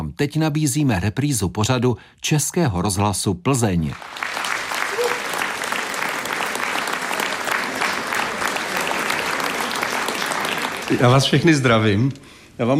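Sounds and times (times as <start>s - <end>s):
speech: 0.2s - 4.4s, 10.9s - 12.7s
audience applause: 4.0s - 12.0s.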